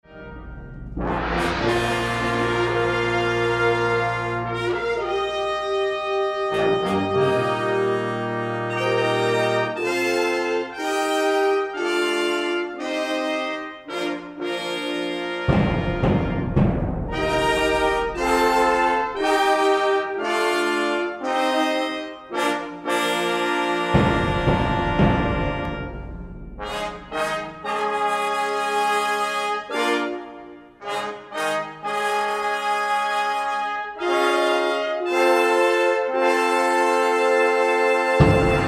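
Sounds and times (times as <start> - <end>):
fanfare: 0.0 - 38.6.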